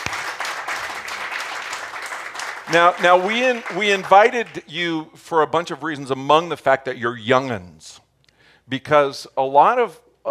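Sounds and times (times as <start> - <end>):
audience applause welcoming invited guests: 0.0 - 4.6
speech: 2.7 - 8.0, 8.7 - 10.2.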